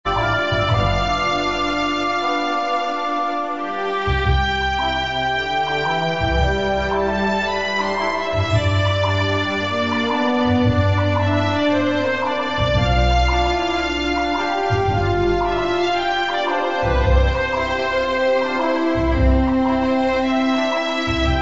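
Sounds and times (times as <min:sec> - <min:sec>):
western country music: 0:00.1 - 0:21.3.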